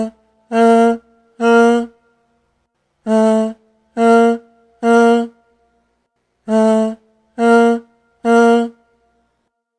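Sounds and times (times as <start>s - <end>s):
voice: 0.0s - 2.0s, 3.0s - 5.4s, 6.5s - 8.8s.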